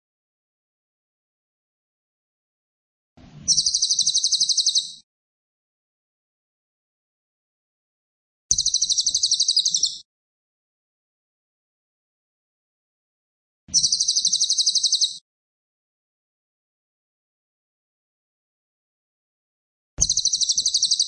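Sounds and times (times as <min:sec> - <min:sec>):
cililin singing fast shrill pulsed trills: 0:03.5 - 0:05.0, 0:08.5 - 0:10.0, 0:13.7 - 0:15.2, 0:20.0 - 0:21.0.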